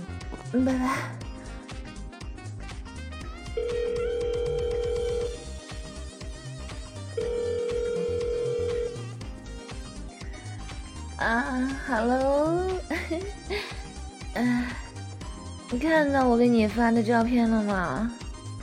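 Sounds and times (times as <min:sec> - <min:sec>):
music: 0:00.0 - 0:18.6
speech: 0:00.5 - 0:01.2, 0:11.2 - 0:13.8, 0:14.4 - 0:14.8, 0:15.7 - 0:18.2
phone ringback tone: 0:03.6 - 0:05.5, 0:07.2 - 0:09.2.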